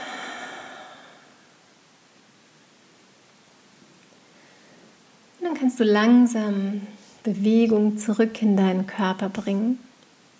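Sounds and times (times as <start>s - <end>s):
slow exhale through a slightly open mouth during a relaxation breathing exercise: 0.0s - 1.6s
speech: 5.4s - 9.9s.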